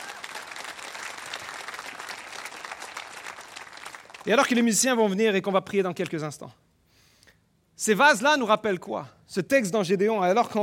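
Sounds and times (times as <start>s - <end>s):
audience applauding: 0.0s - 4.4s
speech: 4.2s - 6.6s, 7.8s - 10.6s.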